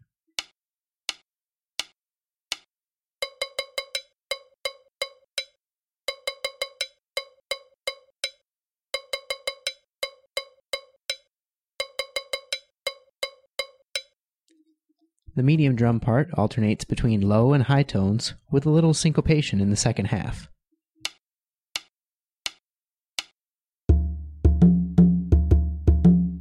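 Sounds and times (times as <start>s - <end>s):
cowbell groove with edge and side tones played with narrow bell stick: 3.2s - 8.4s, 9.0s - 14.2s, 23.9s - 26.3s
speech: 15.4s - 20.6s.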